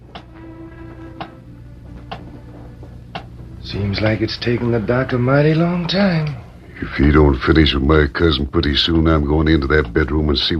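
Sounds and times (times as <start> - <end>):
low constant room hum: 0.0 - 10.5
big clock ticking: 3.1 - 3.4, 9.1 - 10.5
speech: 3.6 - 10.5.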